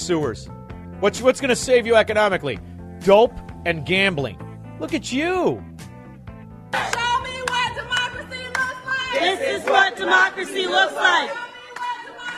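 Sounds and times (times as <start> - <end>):
speech: 0.0 - 5.7, 9.6 - 11.4
crowd cheering: 6.7 - 12.3.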